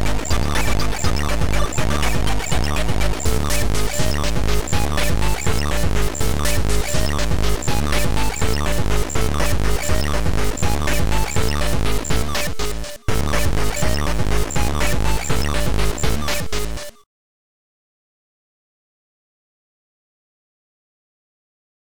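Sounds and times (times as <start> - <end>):
techno music: 0.0 - 17.0.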